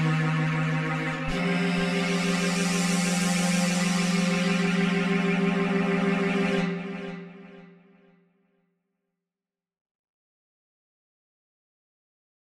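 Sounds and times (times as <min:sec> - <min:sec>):
string instrument: 0:00.0 - 0:08.4.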